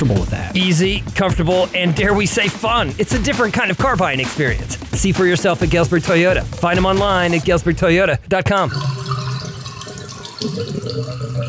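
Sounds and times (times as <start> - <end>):
speech: 0.0 - 9.0, 10.4 - 11.4
water gurgling and sloshing through a drain: 8.6 - 11.4.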